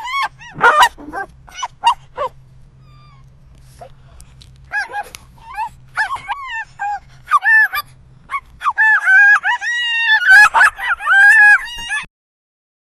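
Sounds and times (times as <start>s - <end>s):
dog laughing and screaming: 0.0s - 2.4s, 4.7s - 12.1s.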